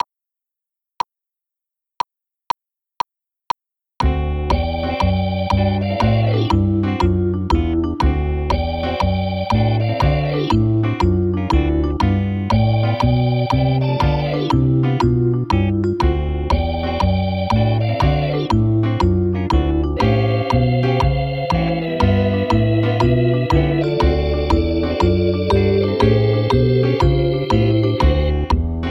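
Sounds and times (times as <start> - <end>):
keyboard: 4.0 - 28.9.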